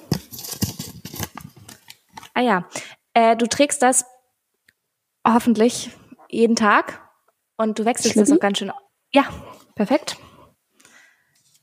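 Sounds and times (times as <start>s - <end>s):
slip of paper being unfolded: 0.0s - 2.3s
speech: 2.4s - 4.2s, 5.3s - 7.0s, 7.6s - 10.3s.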